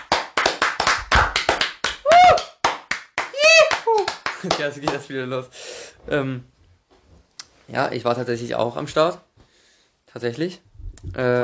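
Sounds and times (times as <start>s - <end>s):
applause: 0.0s - 5.1s
speech: 4.4s - 6.5s, 7.7s - 9.3s, 10.1s - 11.4s.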